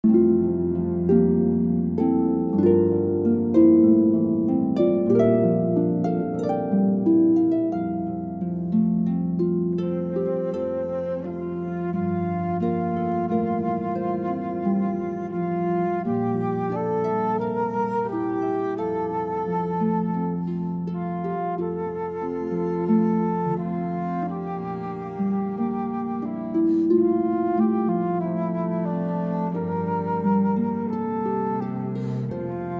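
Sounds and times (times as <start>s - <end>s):
cello: 0.0s - 32.7s
flute: 0.0s - 32.7s
harp: 0.0s - 32.7s.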